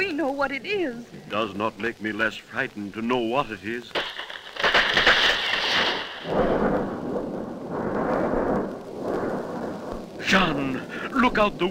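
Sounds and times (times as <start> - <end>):
speech: 0.0 - 4.1, 6.2 - 6.6, 10.3 - 11.6
thunder during a lightning storm: 4.0 - 11.6.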